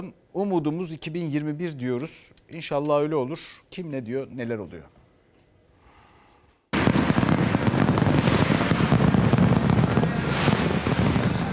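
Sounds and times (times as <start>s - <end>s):
speech: 0.0s - 5.0s
fireworks exploding: 6.7s - 11.5s.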